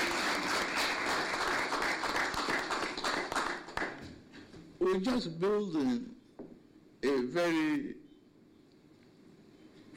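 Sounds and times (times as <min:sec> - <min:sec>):
audience clapping: 0:00.0 - 0:04.2
speech: 0:04.9 - 0:06.2, 0:07.0 - 0:08.0.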